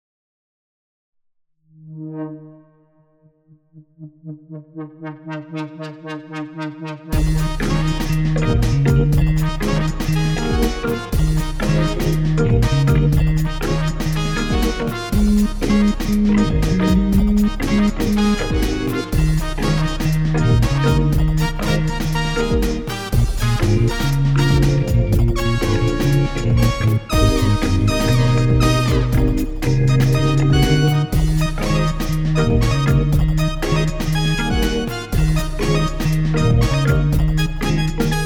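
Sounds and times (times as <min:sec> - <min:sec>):
MIDI blues music: 0:07.2 - 0:38.2.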